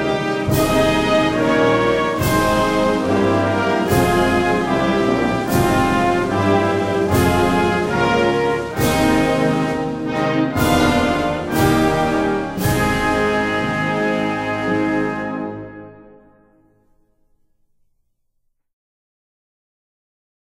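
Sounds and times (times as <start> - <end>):
police military band playing an anthem: 0.0 - 16.3.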